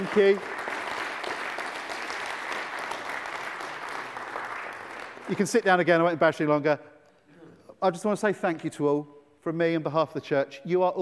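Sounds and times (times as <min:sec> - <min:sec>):
audience applauding: 0:00.0 - 0:06.0
speech: 0:00.1 - 0:00.6, 0:05.3 - 0:06.9, 0:07.8 - 0:11.0.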